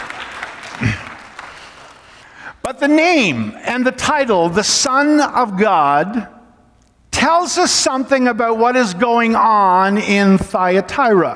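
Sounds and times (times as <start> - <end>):
audience applause: 0.0 - 2.3
speech: 2.7 - 6.4, 7.2 - 11.3.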